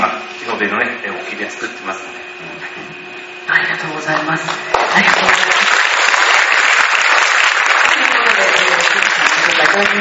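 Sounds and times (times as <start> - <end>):
speech: 0.6 - 5.8, 9.6 - 9.9
audience applause: 4.7 - 9.9.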